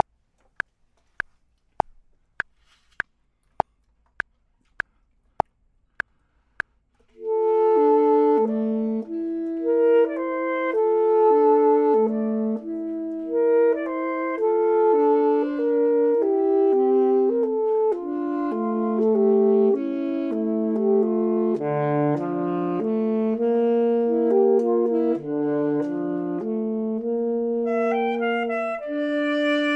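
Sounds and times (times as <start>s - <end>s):
clarinet: 7.0s - 29.7s
saxophone: 7.0s - 29.7s.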